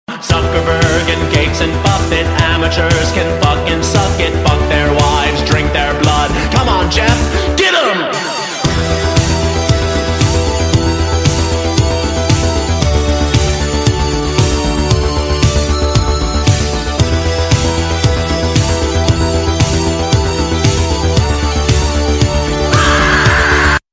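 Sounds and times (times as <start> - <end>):
background music ringtone: 0.6 - 23.8.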